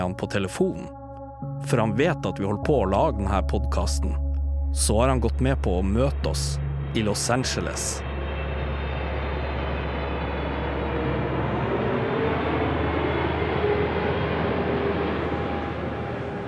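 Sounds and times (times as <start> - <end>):
speech: 0.0 - 1.0, 1.6 - 8.1
aircraft engines roaring outside an airport arrivals hall: 5.2 - 16.4.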